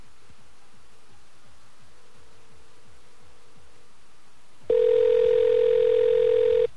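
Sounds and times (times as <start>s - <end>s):
telephone line ringing tone: 4.7s - 6.7s.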